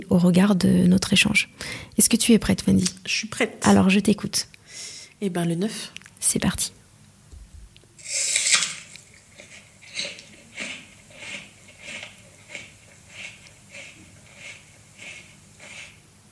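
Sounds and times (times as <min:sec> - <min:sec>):
speech: 0:00.0 - 0:06.8
person chewing with wet crunchy bites: 0:07.8 - 0:16.0.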